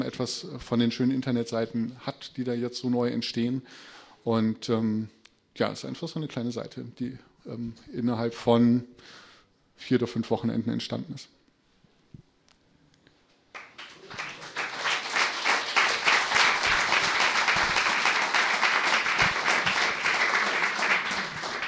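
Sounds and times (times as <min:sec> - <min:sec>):
speech: 0:00.1 - 0:09.2, 0:09.8 - 0:11.4
audience applause: 0:13.5 - 0:21.6.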